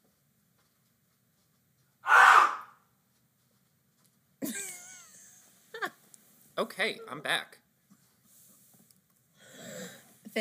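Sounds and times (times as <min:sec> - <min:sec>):
short harsh breathy burst: 0:02.0 - 0:02.7
person screaming away from the microphone: 0:02.1 - 0:02.7
speech: 0:06.6 - 0:07.6.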